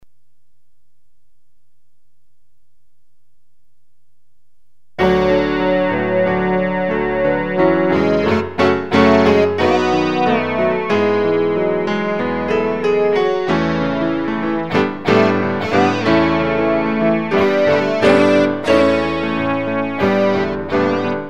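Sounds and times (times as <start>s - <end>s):
guitar: 5.0s - 21.2s
piano: 5.0s - 21.2s.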